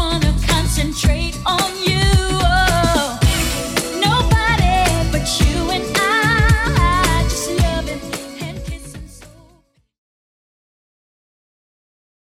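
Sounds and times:
90s REDRUM drum machine beat: 0:00.0 - 0:09.4.

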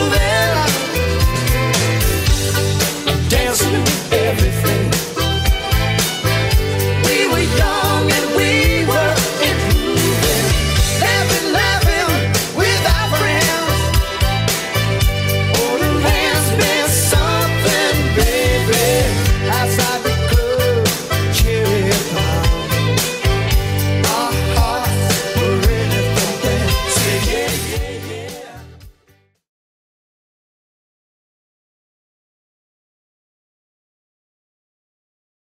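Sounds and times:
80s style drum beat: 0:00.2 - 0:28.1.

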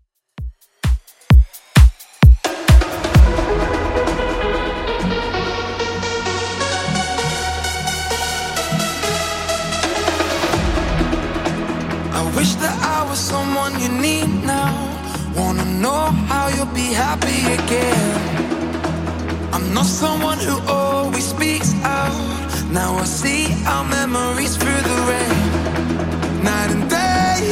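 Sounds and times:
Top40 club mix at 130 BPM: 0:00.4 - 0:27.4.

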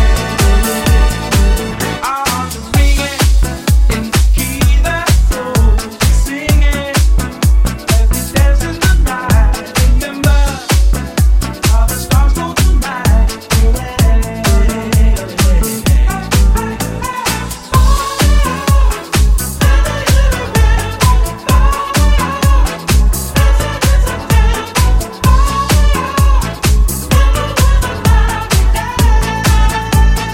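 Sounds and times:
70s house drum beat: 0:00.0 - 0:30.3.

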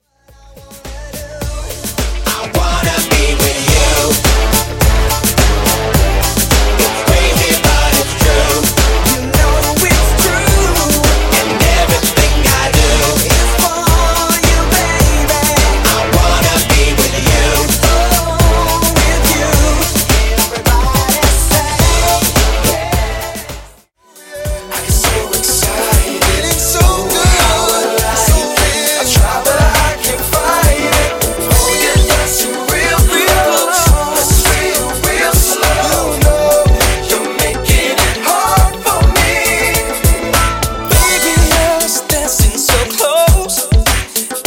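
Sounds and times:
old school pop music: 0:00.0 - 0:44.4.

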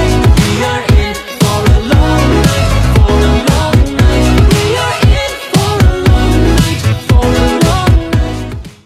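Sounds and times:
80s retro Redrum drum machine beat: 0:00.0 - 0:08.8.

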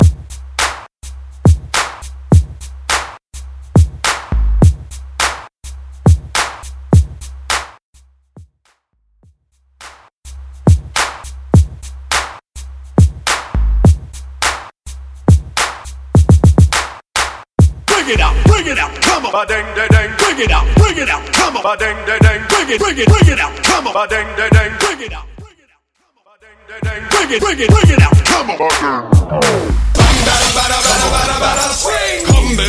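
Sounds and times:
90s Moombahton music: 0:00.0 - 0:32.6.

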